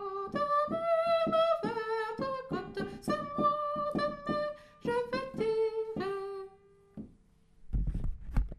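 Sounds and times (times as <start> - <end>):
tenor singing: 0.0 - 6.6.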